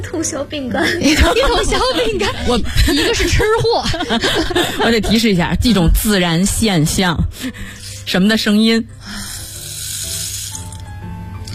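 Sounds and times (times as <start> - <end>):
speech: 0.0 - 9.3
laughter: 0.8 - 5.6
rain stick simulating falling rain: 9.2 - 10.8.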